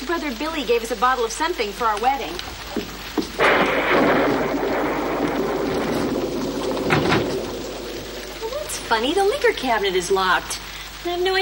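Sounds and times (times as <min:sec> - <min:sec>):
rainstorm: 0:00.0 - 0:11.4
speech: 0:00.1 - 0:02.8, 0:08.9 - 0:11.4
thunder: 0:03.2 - 0:09.6.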